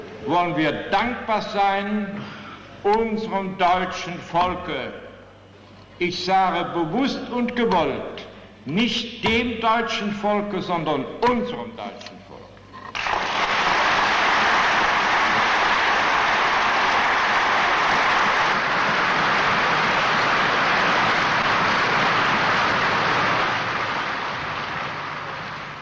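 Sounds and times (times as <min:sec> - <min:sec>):
speech: 0:00.2 - 0:05.0, 0:06.0 - 0:12.0
parliament members applauding while standing: 0:12.9 - 0:25.7.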